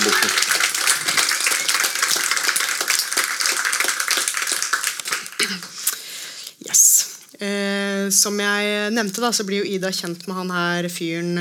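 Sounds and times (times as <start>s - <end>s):
audience applause: 0.0s - 5.9s
speech: 7.4s - 11.3s.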